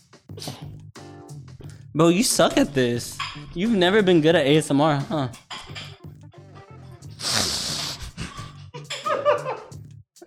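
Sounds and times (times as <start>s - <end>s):
speech: 2.0s - 5.4s
person snorting: 7.2s - 8.7s.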